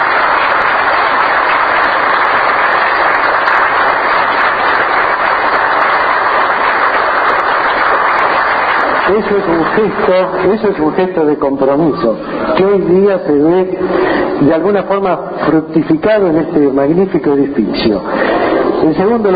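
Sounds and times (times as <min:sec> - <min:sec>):
crowd applauding: 0:00.0 - 0:11.1
speech: 0:09.2 - 0:19.3.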